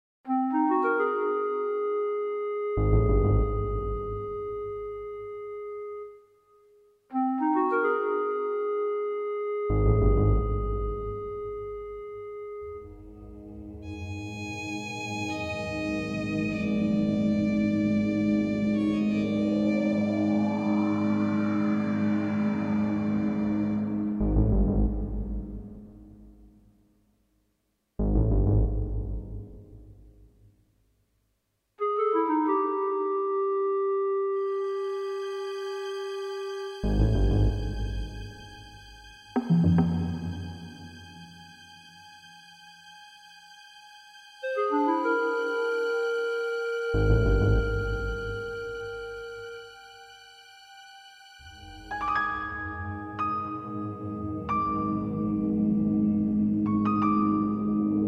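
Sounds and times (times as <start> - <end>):
music: 0.3 - 27.2, 28.0 - 30.7, 31.8 - 58.0.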